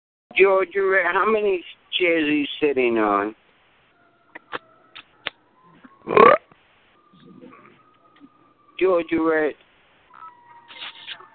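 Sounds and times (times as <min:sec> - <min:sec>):
speech: 0:00.4 - 0:03.4, 0:06.1 - 0:06.4, 0:08.8 - 0:09.6
burp: 0:06.0 - 0:06.6.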